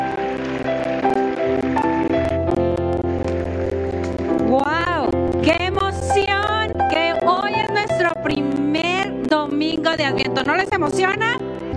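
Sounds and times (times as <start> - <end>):
audience clapping: 0.0 - 8.0
sustained musical tones: 0.0 - 11.7.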